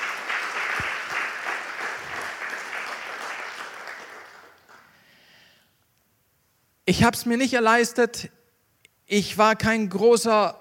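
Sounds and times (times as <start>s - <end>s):
audience applause: 0.0s - 4.9s
speech: 6.9s - 8.4s, 9.1s - 10.5s.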